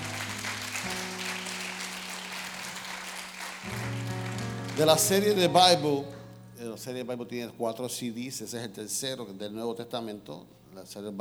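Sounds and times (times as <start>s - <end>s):
audience applause: 0.0s - 5.4s
speech: 4.8s - 11.2s.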